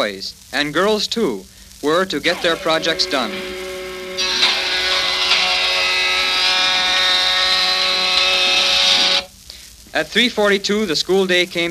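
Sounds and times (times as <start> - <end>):
speech: 0.0 - 4.3, 10.0 - 11.7
school machine shop power tool whining: 2.2 - 9.3.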